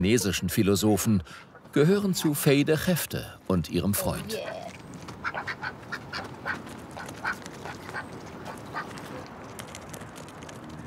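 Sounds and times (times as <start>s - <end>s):
speech: 0.0s - 4.7s
domestic ducks quacking: 4.4s - 9.0s
rumble: 4.5s - 10.8s.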